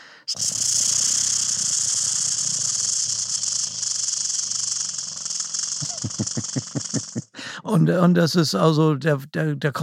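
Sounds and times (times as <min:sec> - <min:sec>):
speech: 0:00.3 - 0:00.8, 0:07.7 - 0:09.8
bird's rattling churring song: 0:00.3 - 0:07.3.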